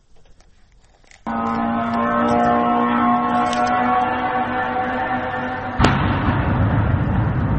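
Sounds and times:
Iranian-made suicide drone engine whine: 1.3s - 7.5s
suicide drone explosions: 5.8s - 7.5s.

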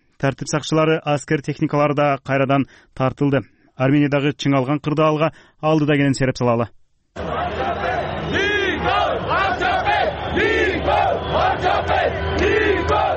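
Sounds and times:
speech: 0.2s - 7.3s
crowd of thousands of demonstrators in the street in Armenia chanting and shouting: 7.2s - 13.1s.

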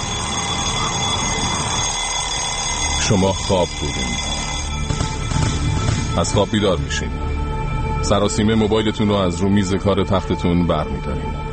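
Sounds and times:
alarm clock ringing: 0.0s - 7.2s
speech: 3.1s - 4.4s, 6.2s - 7.3s, 8.0s - 11.5s.

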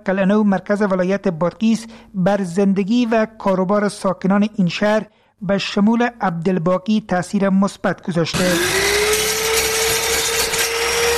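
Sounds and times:
speech: 0.0s - 8.8s
electric machine cutting wood in a carpentry shop: 8.3s - 11.1s.

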